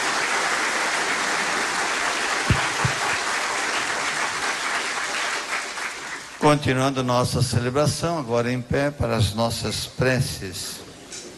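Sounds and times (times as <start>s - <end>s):
audience clapping hands: 0.0s - 6.7s
low thumps: 2.5s - 3.2s
speech: 6.4s - 10.8s.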